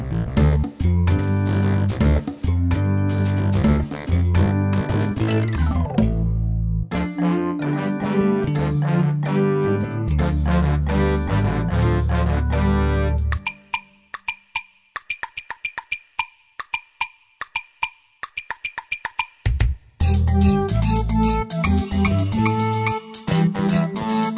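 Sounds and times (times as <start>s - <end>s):
song backing music: 0.2s - 13.7s, 19.6s - 24.3s.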